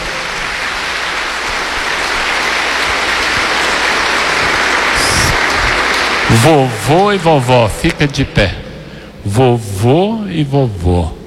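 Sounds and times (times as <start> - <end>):
audience applause: 0.0 - 8.2
speech: 6.3 - 8.6, 9.2 - 11.2.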